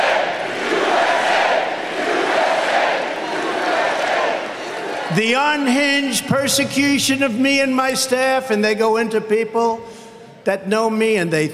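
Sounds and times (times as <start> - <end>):
large rally crowd chanting and cheering: 0.0 - 7.0
speech: 5.2 - 11.5.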